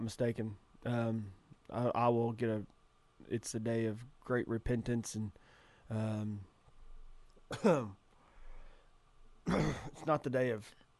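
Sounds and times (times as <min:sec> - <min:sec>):
speech: 0:00.0 - 0:06.5, 0:07.5 - 0:08.0, 0:09.5 - 0:10.9
person breathing: 0:05.4 - 0:05.9, 0:08.1 - 0:09.0
person coughing and choking: 0:07.5 - 0:07.9, 0:09.5 - 0:10.1.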